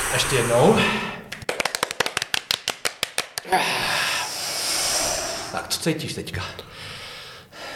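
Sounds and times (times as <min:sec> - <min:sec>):
speech: 0:00.1 - 0:01.1, 0:03.5 - 0:04.0, 0:05.5 - 0:07.0
hands clapping: 0:01.3 - 0:03.5.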